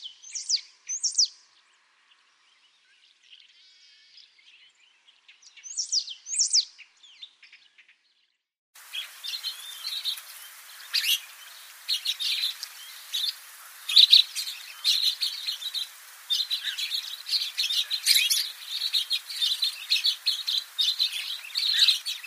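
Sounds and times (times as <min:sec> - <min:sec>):
finch calling: 0:08.8 - 0:22.2.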